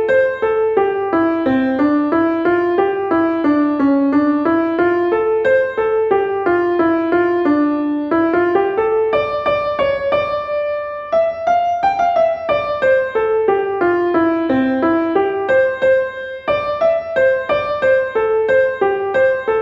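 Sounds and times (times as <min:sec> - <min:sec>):
slow early piano: 0:00.0 - 0:19.6.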